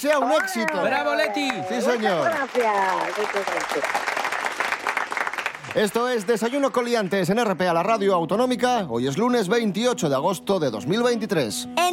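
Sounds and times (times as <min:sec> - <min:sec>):
speech: 0:00.0 - 0:04.1, 0:05.6 - 0:11.9
applause: 0:00.0 - 0:07.6.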